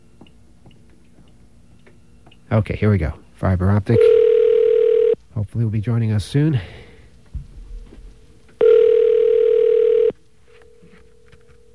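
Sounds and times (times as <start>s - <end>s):
speech: 2.5s - 4.1s, 5.4s - 6.8s
telephone ringing tone: 3.9s - 5.2s, 8.6s - 10.2s.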